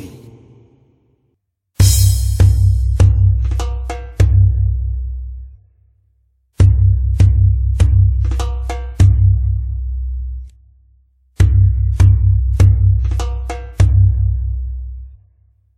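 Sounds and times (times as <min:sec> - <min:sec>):
masmoodi kebeer percussion rhythm: 0:01.8 - 0:05.0, 0:06.6 - 0:10.5, 0:11.4 - 0:14.5.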